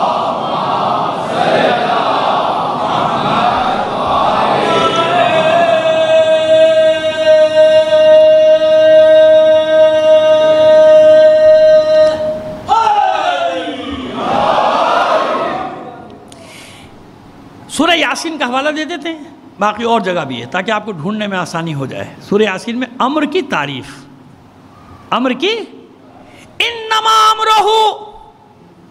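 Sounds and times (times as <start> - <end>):
congregation reciting salawat in unison: 0.0 - 16.2
speech: 18.8 - 24.0, 25.1 - 25.8, 27.0 - 28.0.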